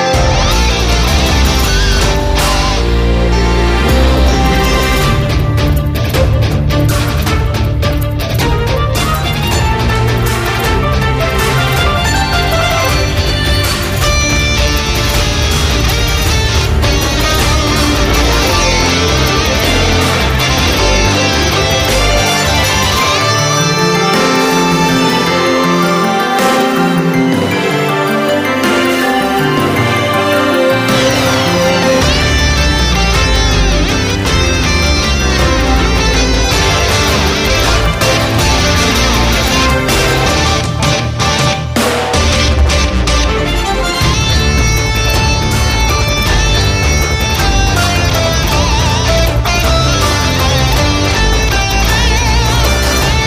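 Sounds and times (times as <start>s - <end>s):
battle background music: 0.2s - 53.2s.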